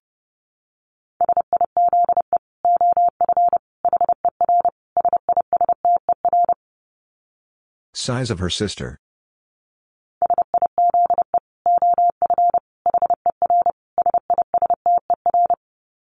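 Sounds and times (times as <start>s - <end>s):
rapid Morse code beeps at 30 words per minute: 1.2s - 6.6s, 10.2s - 15.6s
speech: 8.0s - 9.0s.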